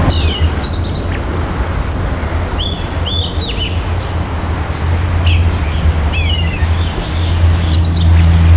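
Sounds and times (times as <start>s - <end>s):
American robin singing: 0.0s - 1.2s, 1.9s - 4.2s, 5.2s - 8.4s.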